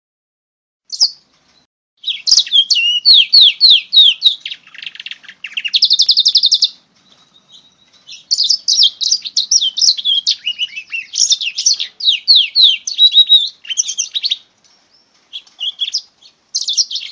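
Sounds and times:
house finch canary hybrid singing a rapid warble: 0:00.9 - 0:01.3, 0:02.0 - 0:17.1.

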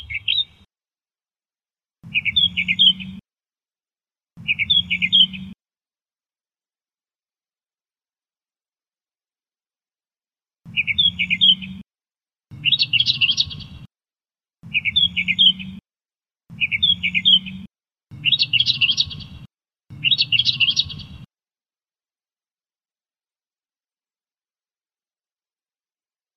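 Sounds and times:
Australian reed warbler song: 0:00.0 - 0:00.6, 0:02.1 - 0:03.2, 0:04.4 - 0:05.6, 0:10.7 - 0:11.8, 0:12.5 - 0:13.9, 0:14.7 - 0:15.8, 0:16.5 - 0:21.3.

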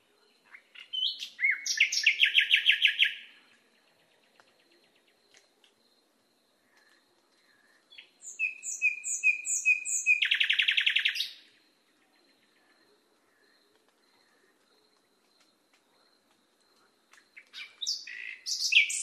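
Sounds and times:
nightingale song on a training recording for cage birds: 0:00.2 - 0:05.4, 0:07.9 - 0:12.7, 0:17.1 - 0:19.0.

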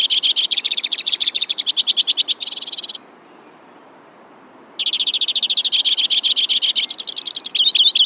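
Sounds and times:
White-winged crossbill trilling: 0:00.0 - 0:03.0, 0:04.8 - 0:08.0.

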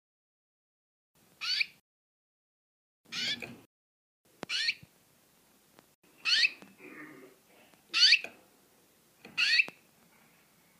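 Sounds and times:
female canary singing: 0:01.4 - 0:01.8, 0:03.1 - 0:03.7, 0:04.4 - 0:04.9, 0:06.1 - 0:06.8, 0:07.9 - 0:08.4, 0:09.2 - 0:09.8.

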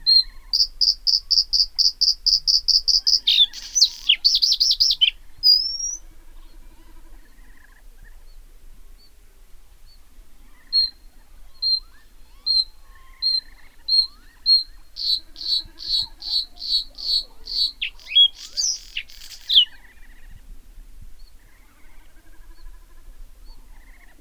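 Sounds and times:
bluethroat singing: 0:00.0 - 0:07.4, 0:10.6 - 0:19.9.

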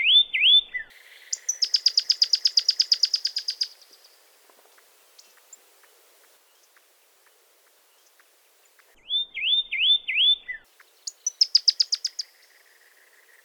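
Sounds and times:
Pyrrhuloxia singing slurred whistles and sharp notes: 0:00.0 - 0:04.2, 0:09.0 - 0:13.4.

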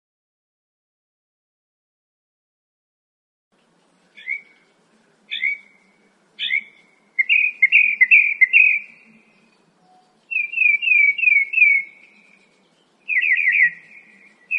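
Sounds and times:
Northern mockingbird song: 0:04.1 - 0:14.5.

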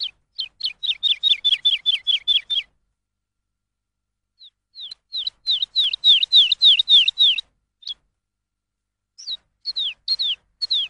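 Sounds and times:
lark song: 0:00.0 - 0:02.9, 0:04.3 - 0:08.2, 0:09.1 - 0:10.8.

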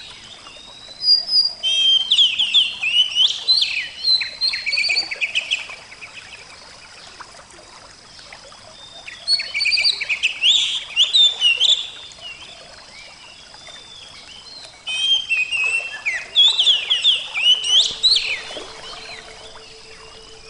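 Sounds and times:
Oriental magpie-robin song: 0:00.0 - 0:07.2, 0:08.1 - 0:20.4.

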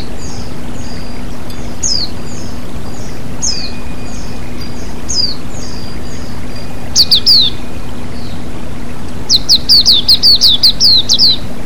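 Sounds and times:
white-eye chirping: 0:00.0 - 0:11.6.

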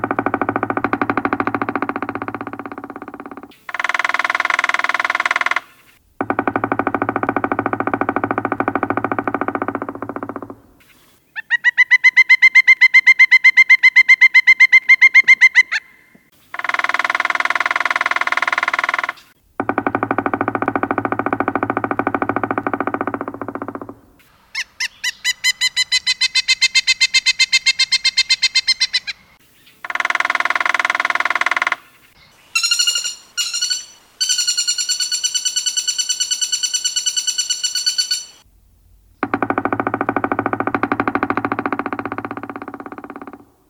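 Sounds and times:
woodpecker pecking combination: 0:00.0 - 0:29.2, 0:29.8 - 0:38.5, 0:39.2 - 0:43.6.

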